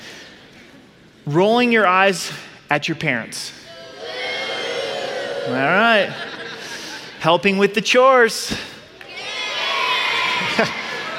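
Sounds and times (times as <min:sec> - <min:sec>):
speech: 0:01.3 - 0:03.6, 0:05.5 - 0:06.3, 0:07.2 - 0:08.7, 0:10.6 - 0:10.8
crowd of children cheering and shouting at a show: 0:03.7 - 0:06.3, 0:09.1 - 0:11.1
laughter: 0:04.9 - 0:07.2, 0:10.2 - 0:11.1.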